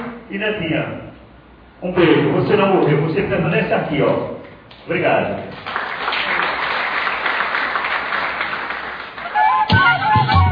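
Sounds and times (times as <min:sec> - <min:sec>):
speech: 0:00.3 - 0:01.2, 0:01.8 - 0:05.8
audience applause: 0:05.6 - 0:09.8.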